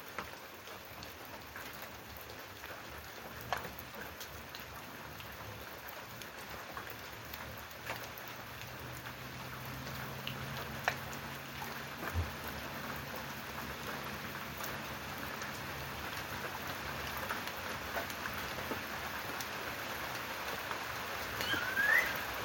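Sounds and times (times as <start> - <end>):
rain falling over open countryside: 0.0 - 22.4
brief high chirp: 21.4 - 22.2.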